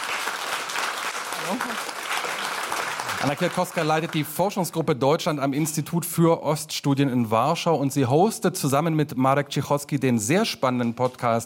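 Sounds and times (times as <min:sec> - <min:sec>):
applause for a guest: 0:00.0 - 0:04.7
speech: 0:01.4 - 0:02.4, 0:03.2 - 0:11.4.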